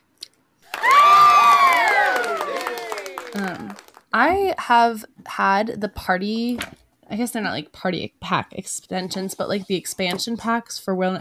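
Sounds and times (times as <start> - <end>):
crowd cheering with excited shouting voices: 0.6 - 4.0
speech: 3.6 - 11.2.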